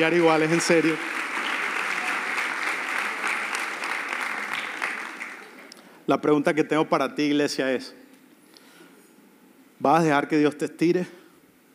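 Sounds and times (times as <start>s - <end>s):
speech: 0.0s - 1.2s, 6.1s - 8.0s, 9.8s - 11.2s
audience applause: 0.0s - 5.7s.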